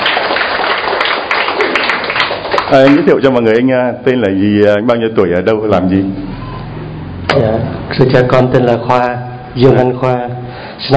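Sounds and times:
audience applause welcoming a man invited up as guest: 0.0 - 3.2
speech: 2.7 - 6.2, 7.4 - 10.9.

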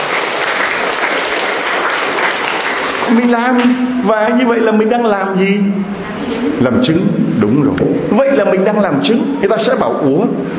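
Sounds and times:
audience applause: 0.0 - 3.3
speech: 3.1 - 10.5.

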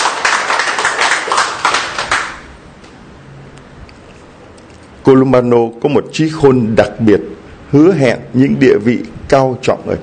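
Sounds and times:
church congregation applause at a feast-day celebration of Saint Columban: 0.0 - 2.5
speech: 5.1 - 10.0.

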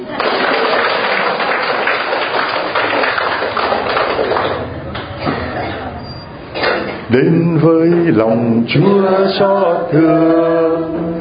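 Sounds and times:
congregation applause at a Christian religious gathering: 0.0 - 4.8
speech: 7.1 - 11.1.

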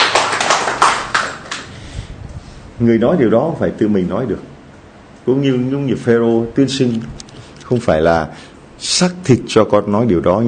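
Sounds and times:
church congregation clapping: 0.0 - 1.7
speech: 2.8 - 4.5, 5.3 - 10.4.

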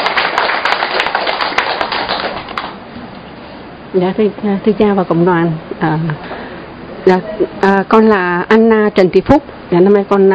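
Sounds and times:
church congregation clapping to welcome a woman: 0.0 - 2.8
speech: 3.9 - 6.2, 7.1 - 10.3.

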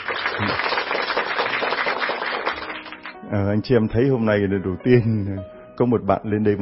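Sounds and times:
audience applause at a church gathering: 0.0 - 3.2
speech: 3.3 - 6.5.

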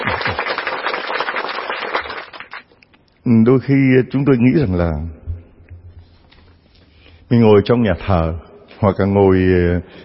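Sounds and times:
audience applause: 0.0 - 2.6
speech: 3.3 - 5.2, 7.3 - 10.0.

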